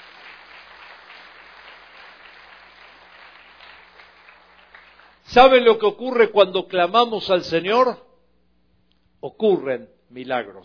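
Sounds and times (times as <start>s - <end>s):
crowd applauding: 0.0s - 5.2s
speech: 5.3s - 8.0s, 9.2s - 10.6s.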